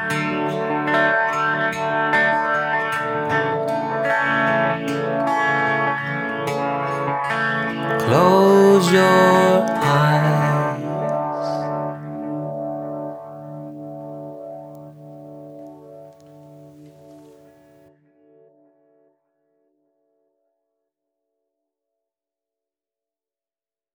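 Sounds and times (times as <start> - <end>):
spacey meditation guitar harmonies: 0.0 - 14.6.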